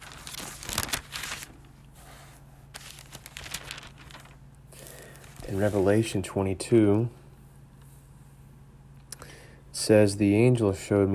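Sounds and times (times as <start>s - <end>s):
thin Bible pages turning: 0.0s - 1.9s, 2.7s - 6.0s
low steady hum: 0.0s - 11.1s
speech: 5.5s - 7.2s, 9.9s - 11.1s.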